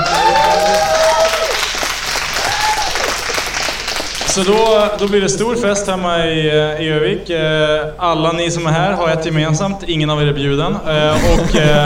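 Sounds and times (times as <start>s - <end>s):
audience applause: 0.0s - 5.2s
speech: 4.4s - 11.8s
laughter: 11.0s - 11.8s.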